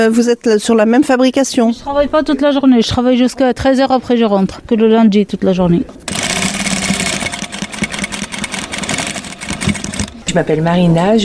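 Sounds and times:
speech: 0.0s - 6.0s, 10.3s - 11.2s
sewing machine running in a sewing workshop: 6.1s - 10.4s.

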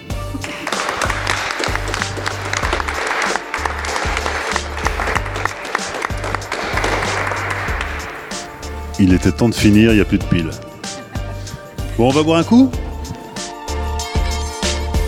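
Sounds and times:
laughter: 0.0s - 14.9s
applause: 0.4s - 8.8s
speech: 9.0s - 10.7s, 12.0s - 12.8s.

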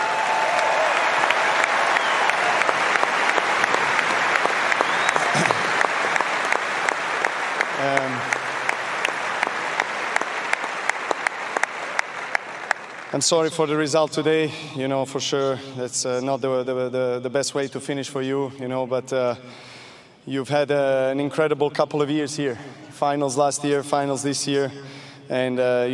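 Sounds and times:
stadium crowd applauding: 0.0s - 13.4s
speech: 13.2s - 25.9s.

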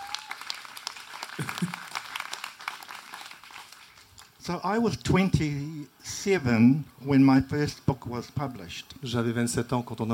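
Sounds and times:
audience applause: 0.0s - 4.3s
speech: 4.5s - 10.1s.

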